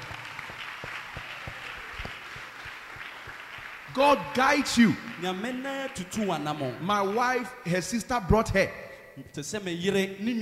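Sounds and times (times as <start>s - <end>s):
audience clapping: 0.0s - 7.8s
speech: 4.0s - 10.4s.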